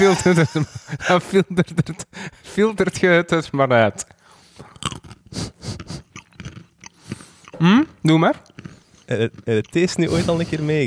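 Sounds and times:
laughter: 0.0 - 2.1
speech: 0.0 - 5.8, 7.6 - 8.5, 9.1 - 10.8
person chewing a nut: 4.5 - 10.8.

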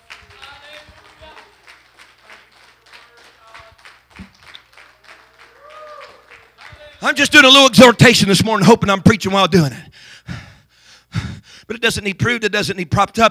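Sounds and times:
people clapping hands: 0.0 - 7.3
speech: 7.0 - 9.9, 11.8 - 13.2.

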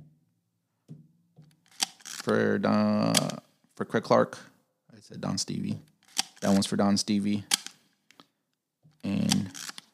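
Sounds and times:
Leica M3 camera shutter clicks: 1.7 - 2.3, 3.1 - 3.4, 6.1 - 6.6, 7.5 - 7.8, 9.2 - 9.9
speech: 2.3 - 7.6.

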